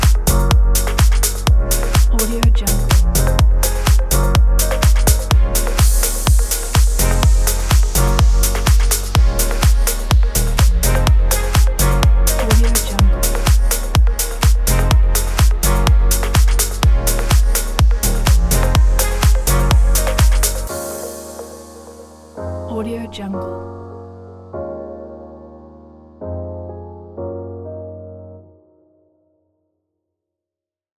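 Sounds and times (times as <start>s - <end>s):
energetic deep house music: 0.0s - 23.5s.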